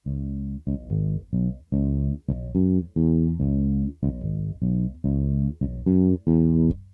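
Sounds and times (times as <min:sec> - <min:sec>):
bass: 0:00.0 - 0:06.9.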